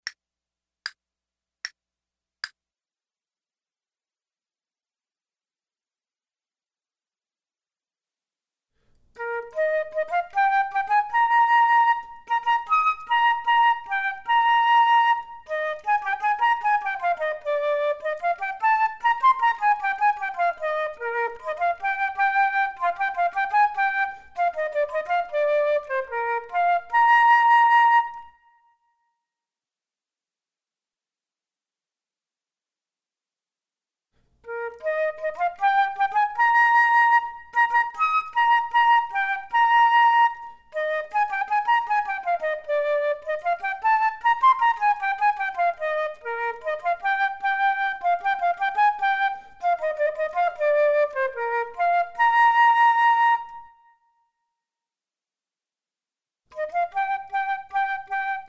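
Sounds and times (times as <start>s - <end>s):
flute duet: 9.2s - 29.1s, 34.4s - 54.4s, 56.5s - 58.4s.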